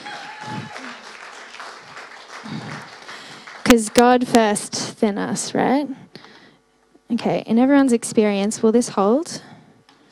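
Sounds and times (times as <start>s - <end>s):
faint voices cheering: 0.0s - 1.2s
round of applause: 0.0s - 4.0s
speech: 3.7s - 6.0s, 7.1s - 9.5s.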